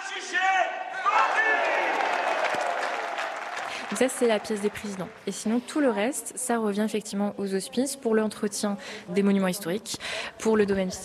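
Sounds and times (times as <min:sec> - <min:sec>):
crowd shouting and cheering at wine auction: 0:00.0 - 0:05.4
scattered clapping: 0:01.2 - 0:05.6
speech: 0:04.0 - 0:11.0.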